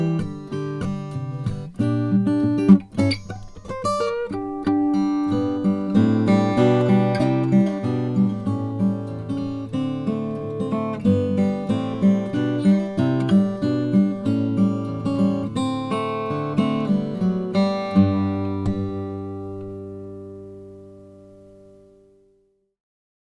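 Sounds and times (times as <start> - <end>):
Borges OM 28 Brazilian rosewood guitar: 0.0 - 22.4.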